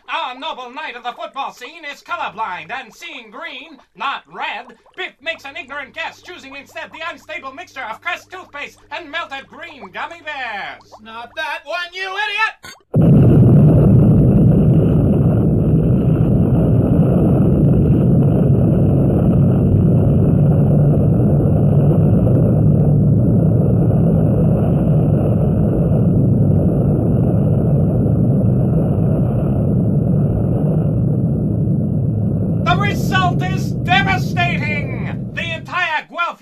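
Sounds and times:
speech: 0.3 - 12.9
synthetic nuclear explosion: 13.0 - 35.4.

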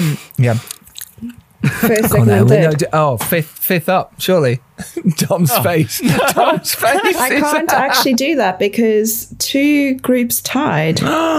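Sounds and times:
speech: 0.2 - 11.3
bites and crunching chews of a Cornetto ice cream cone: 0.6 - 1.4
laughter: 1.6 - 2.5, 4.8 - 8.2.

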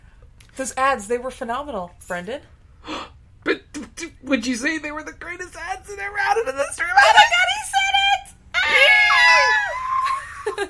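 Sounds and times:
speech: 0.6 - 3.6, 4.2 - 7.6
people imitating dolphin noises: 8.6 - 10.4
people giggling: 9.7 - 10.6.

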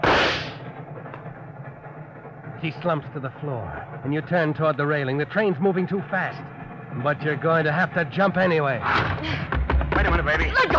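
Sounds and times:
gunshot from a .32 automatic pistol: 0.0 - 0.6
speech: 2.6 - 10.7.

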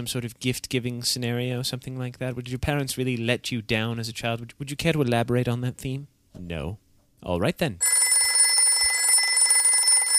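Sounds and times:
speech: 0.0 - 8.0
telephone ringing: 7.8 - 10.1.

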